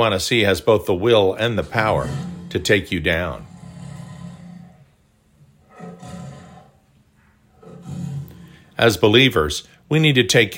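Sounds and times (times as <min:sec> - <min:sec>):
speech: 0:00.0 - 0:03.5, 0:08.8 - 0:10.5
tiger roaring: 0:01.3 - 0:06.9, 0:07.5 - 0:08.8.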